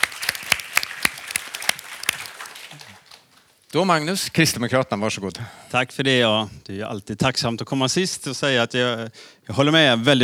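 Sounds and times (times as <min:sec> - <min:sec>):
applause: 0:00.0 - 0:03.6
speech: 0:03.7 - 0:10.2.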